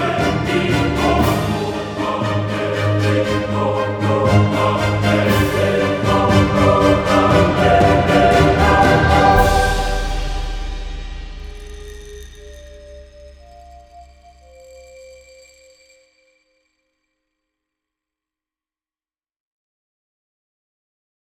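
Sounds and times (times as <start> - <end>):
bassoon playing instrumental music: 0.2 - 10.9.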